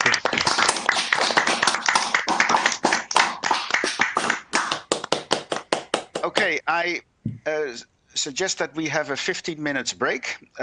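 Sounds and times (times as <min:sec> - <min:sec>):
warm round of applause: 0:00.0 - 0:06.6
speech: 0:06.4 - 0:10.6.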